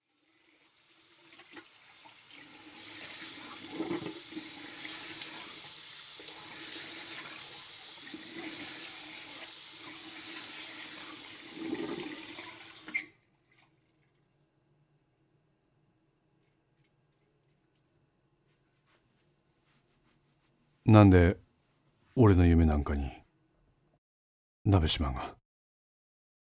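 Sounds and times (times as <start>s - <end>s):
faucet running into a bathroom sink: 0.0s - 13.6s
speech: 20.8s - 21.4s, 22.2s - 23.2s, 24.7s - 25.4s.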